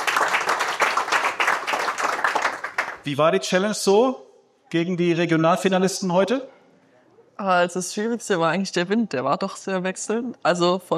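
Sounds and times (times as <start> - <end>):
applause at a golf event for the first Beat the Pro challenge: 0.0 - 3.1
speech: 3.0 - 6.6, 7.4 - 10.9.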